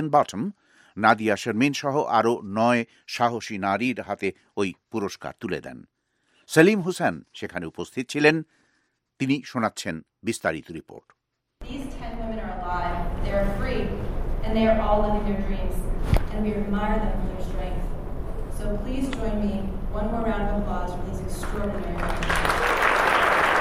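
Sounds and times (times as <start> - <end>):
speech: 0.0 - 5.9, 6.5 - 8.6, 9.2 - 12.1, 12.7 - 17.8, 18.6 - 22.6
loud applause as award-winning women come on stage: 22.0 - 23.5.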